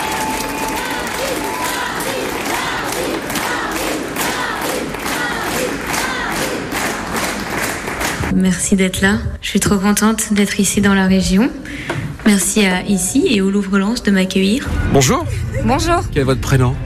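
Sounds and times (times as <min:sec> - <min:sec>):
scattered voices and cheers: 0:00.0 - 0:07.5
audience applause: 0:00.0 - 0:08.3
speech: 0:08.4 - 0:16.8.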